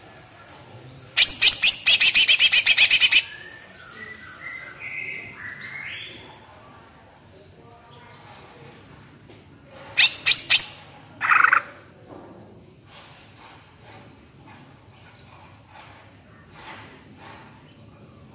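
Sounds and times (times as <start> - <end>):
greater green leafbird song: 1.2 - 6.5, 10.0 - 11.6.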